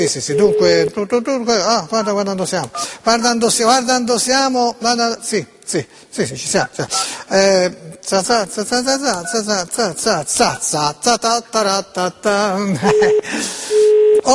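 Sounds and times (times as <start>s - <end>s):
speech: 0.0s - 14.3s
Italian telephone busy tone: 0.3s - 0.9s, 12.9s - 14.2s.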